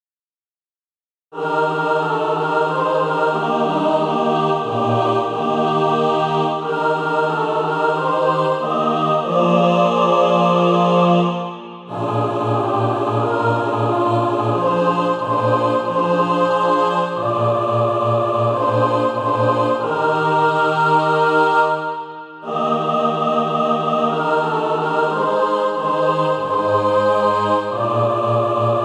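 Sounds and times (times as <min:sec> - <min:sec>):
mixed SATB choir practice music: 0:01.4 - 0:28.8.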